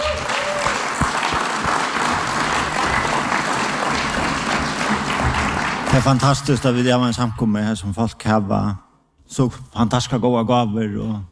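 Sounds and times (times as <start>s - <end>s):
audience applause: 0.0s - 6.6s
speech: 6.0s - 11.3s.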